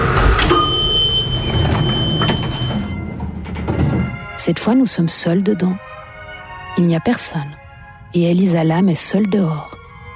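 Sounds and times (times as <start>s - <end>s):
elevator door closing: 0.2s - 4.5s
speech: 4.4s - 5.9s, 6.7s - 9.8s.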